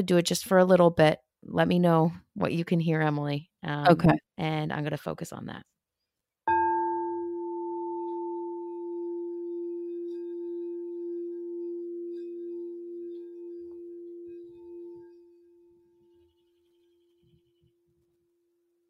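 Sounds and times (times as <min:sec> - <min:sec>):
speech: 0:00.0 - 0:05.7
singing bowl struck and rubbed: 0:06.5 - 0:17.9.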